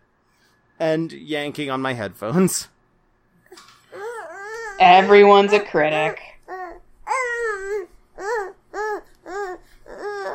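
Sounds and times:
speech: 0.8 - 2.7, 4.8 - 6.3
baby babbling: 3.9 - 10.3.

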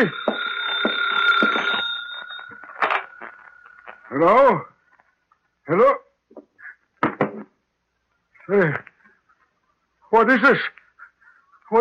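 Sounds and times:
speech: 0.0 - 0.2, 4.2 - 4.7, 5.7 - 6.0, 8.5 - 8.9, 10.1 - 10.8
telephone ringing in an office: 0.0 - 4.0.

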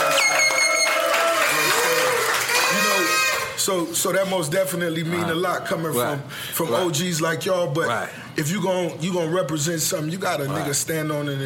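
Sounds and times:
crowd cheering and applauding: 0.0 - 3.6
high whistles: 0.0 - 3.6
speech: 3.7 - 11.4.

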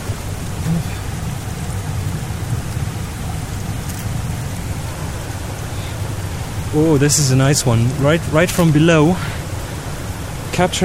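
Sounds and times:
water falling over rocks: 0.0 - 10.8
speech: 6.8 - 9.4, 10.6 - 10.8.

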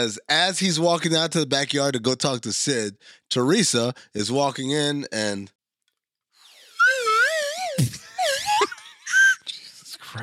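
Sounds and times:
speech: 0.0 - 5.6
slide whistle: 6.4 - 9.4.

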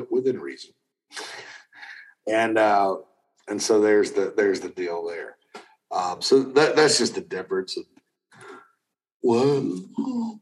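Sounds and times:
speech: 0.1 - 1.5, 2.3 - 8.0, 9.2 - 10.3
person yawning: 9.4 - 10.3.

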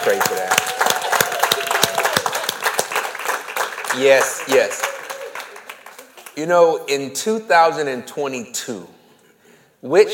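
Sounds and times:
audience applause: 0.0 - 6.4
speech: 0.1 - 0.8, 3.9 - 4.9, 6.4 - 9.0, 9.8 - 10.1.

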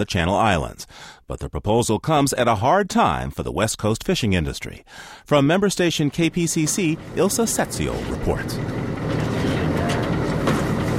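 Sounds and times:
speech: 0.0 - 9.3
research boat engine idling near shore of Anacapa Island off Santa Barbara: 6.9 - 10.9.

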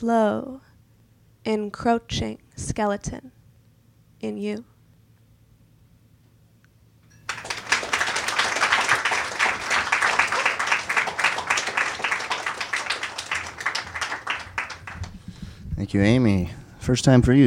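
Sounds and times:
speech: 0.0 - 0.7, 1.4 - 3.4, 4.2 - 4.7, 15.8 - 17.4
audience applause after a reading: 7.3 - 15.3.

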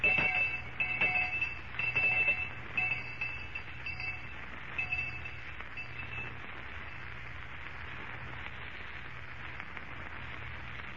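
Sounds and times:
school lunch electric bell ringing: 0.0 - 7.1.

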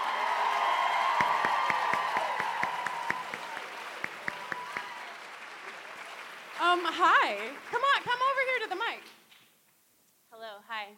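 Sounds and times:
audience applause: 0.0 - 9.0
speech: 6.9 - 9.2, 10.7 - 10.9.

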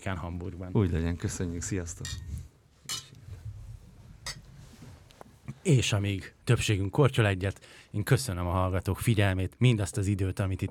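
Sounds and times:
speech: 0.0 - 2.5, 5.6 - 10.6
glasses clinking in a toast: 2.1 - 3.2, 4.3 - 4.5.

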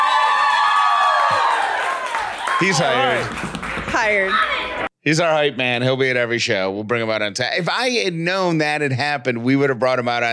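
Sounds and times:
whoops from crowd: 0.0 - 3.1
crowd cheering and clapping: 0.0 - 4.9
speech: 2.6 - 10.3.

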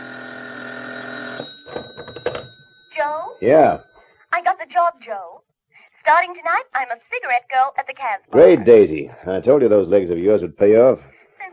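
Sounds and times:
old-style telephone bell ringing: 0.0 - 4.1
speech: 3.0 - 5.4, 6.0 - 11.5.

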